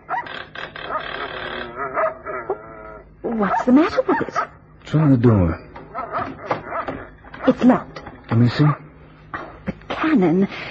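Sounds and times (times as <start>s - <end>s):
dogs barking: 0.0s - 4.7s, 5.8s - 9.6s
dogs whining yips: 0.0s - 4.7s, 5.6s - 7.8s
speech: 3.4s - 5.6s, 7.4s - 8.8s, 10.0s - 10.6s.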